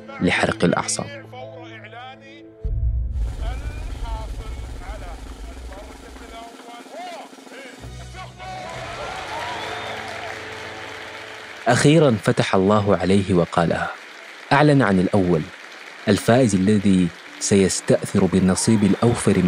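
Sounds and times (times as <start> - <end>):
speech: 0.1 - 1.5, 11.7 - 19.4
low rumble: 2.6 - 6.4
crowd cheering: 3.3 - 19.4
hall erupting in applause: 3.4 - 19.4.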